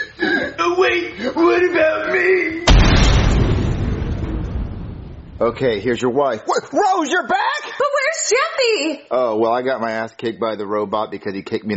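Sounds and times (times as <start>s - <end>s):
speech: 0.8s - 2.6s, 5.4s - 11.7s
cartoon explosion in space: 2.7s - 5.6s.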